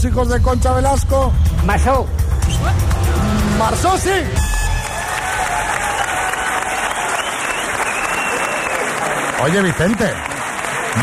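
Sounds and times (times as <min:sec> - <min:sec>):
speech: 0:00.0 - 0:02.9, 0:03.6 - 0:04.5, 0:09.4 - 0:10.3
audience applause, many hands clapping: 0:04.7 - 0:11.0.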